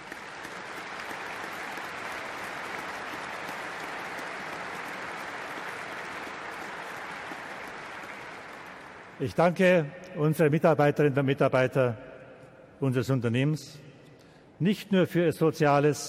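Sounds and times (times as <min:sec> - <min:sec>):
audience applause at shareholder meeting: 0:00.0 - 0:09.3
speech: 0:09.2 - 0:12.1, 0:12.8 - 0:13.8, 0:14.6 - 0:16.0.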